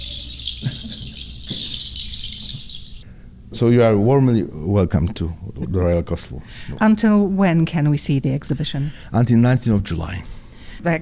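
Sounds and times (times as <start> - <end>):
mechanical device imitating birdsong: 0.0 - 3.0
speech: 3.6 - 11.0.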